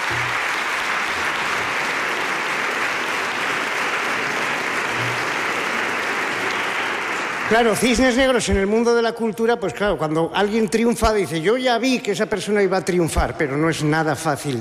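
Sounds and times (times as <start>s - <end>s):
audience applause: 0.0s - 9.0s
speech: 7.5s - 14.5s.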